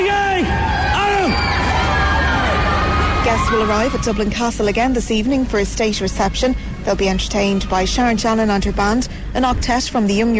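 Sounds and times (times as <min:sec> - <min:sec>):
schoolchildren cheering and shouting: 0:00.4 - 0:04.2
speech: 0:03.5 - 0:10.3.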